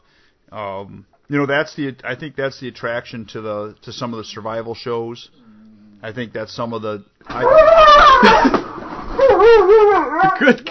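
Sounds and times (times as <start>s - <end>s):
speech: 0.5s - 5.4s, 6.0s - 8.8s, 9.4s - 10.6s
dog whimpering: 9.1s - 10.6s.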